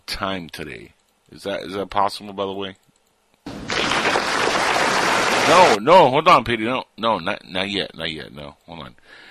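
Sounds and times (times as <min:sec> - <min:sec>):
speech: 0:00.2 - 0:02.9, 0:05.5 - 0:09.2
applause sound effect: 0:03.5 - 0:05.8.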